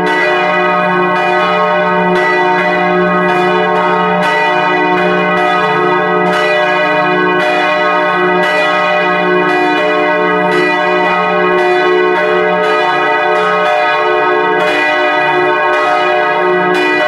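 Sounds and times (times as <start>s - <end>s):
church bells ringing on a Sunday: 0.0s - 17.0s.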